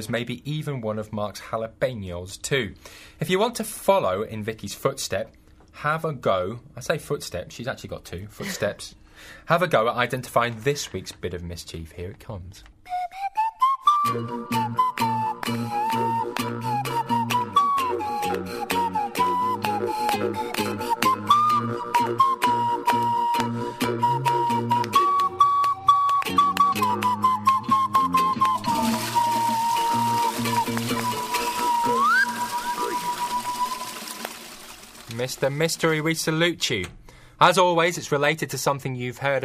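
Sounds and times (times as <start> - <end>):
speech: 0.0 - 13.2, 14.0 - 15.6, 35.2 - 39.4
tune played on panpipes: 12.9 - 35.0
rhythmic lower accompaniment: 13.0 - 36.3.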